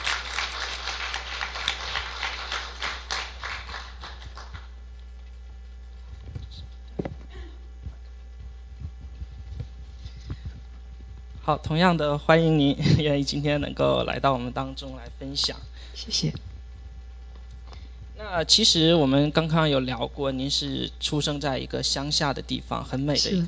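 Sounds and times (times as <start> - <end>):
small audience at a faith gathering applauding to welcome a guest: 0.0 - 4.8
scattered faint claps: 0.0 - 5.3
speech: 11.5 - 16.5, 18.4 - 23.4.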